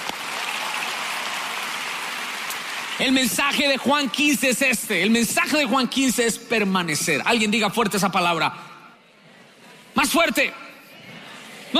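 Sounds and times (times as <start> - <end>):
loud applause from audience: 0.0 - 3.5
speech: 3.0 - 8.7, 10.0 - 10.6.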